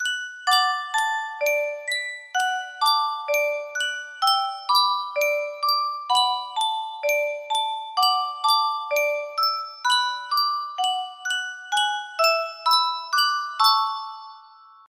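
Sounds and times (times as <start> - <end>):
music box melody: 0.0 - 14.9.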